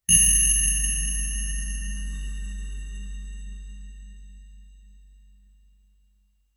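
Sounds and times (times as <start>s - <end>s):
reward ding: 0.1s - 2.6s.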